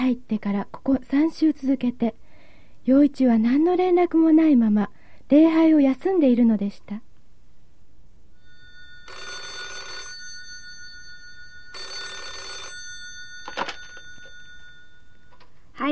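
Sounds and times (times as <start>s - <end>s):
speech: 0.0s - 2.2s, 2.8s - 7.1s
telephone ringing: 8.4s - 15.6s.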